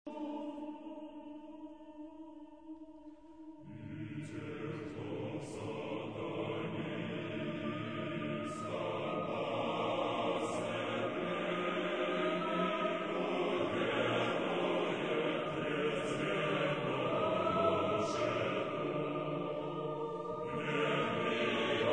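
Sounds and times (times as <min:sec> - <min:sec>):
choir singing: 0:00.1 - 0:21.9.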